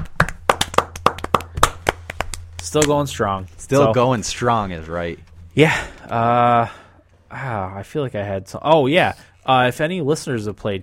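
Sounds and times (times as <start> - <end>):
hand claps: 0.0 - 3.0
faint low hum: 0.0 - 8.1
speech: 2.7 - 10.8.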